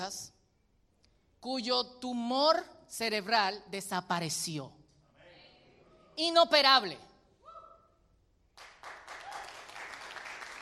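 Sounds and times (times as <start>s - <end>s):
speech: 1.4s - 4.8s, 6.2s - 7.1s
audience applause: 8.6s - 10.6s.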